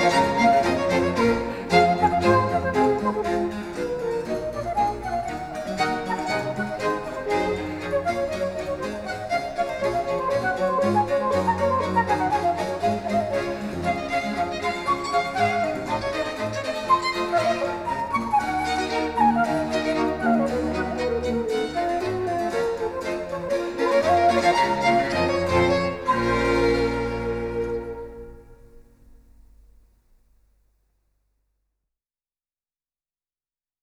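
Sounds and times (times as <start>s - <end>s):
orchestral suite: 0.0s - 29.5s.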